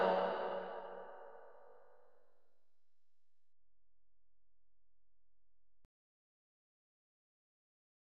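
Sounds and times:
slowed Brazilian funk music stadium version: 0.0 - 0.8.

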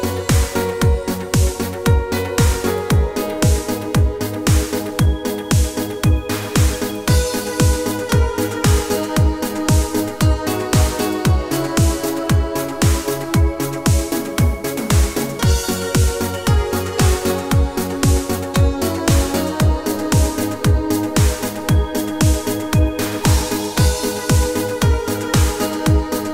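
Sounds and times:
italo disco instrumental on Korg Pa4X keyboard: 0.0 - 26.3.

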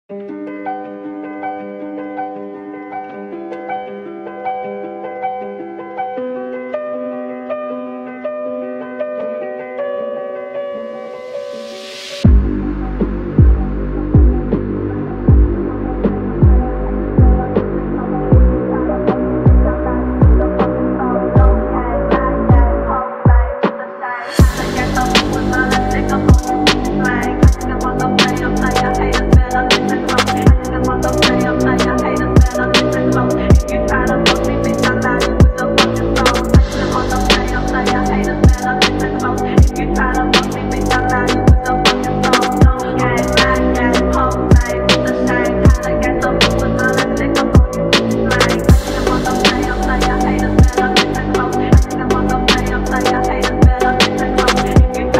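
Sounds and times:
funk phonk remix: 12.2 - 55.1.

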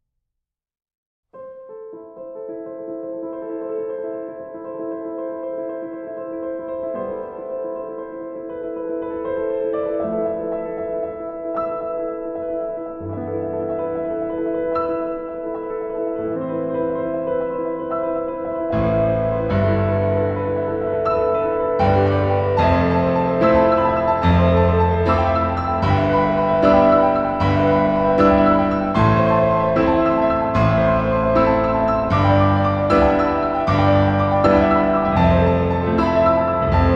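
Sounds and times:
epic piano solo: 1.4 - 36.9.

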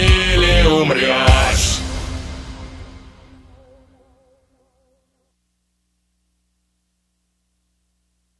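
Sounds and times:
rap music: 0.0 - 2.7.

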